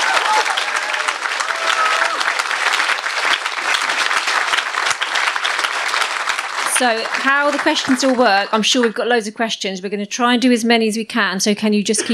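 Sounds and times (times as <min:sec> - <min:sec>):
audience applause: 0:00.0 - 0:09.0
speech: 0:06.8 - 0:12.1.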